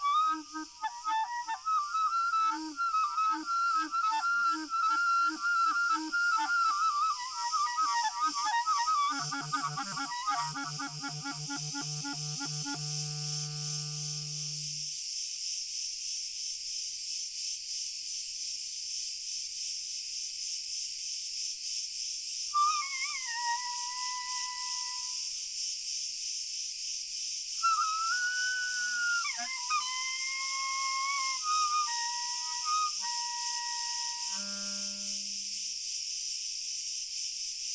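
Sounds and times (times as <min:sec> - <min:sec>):
distant chorus of crickets chirping: 0:00.0 - 0:37.7.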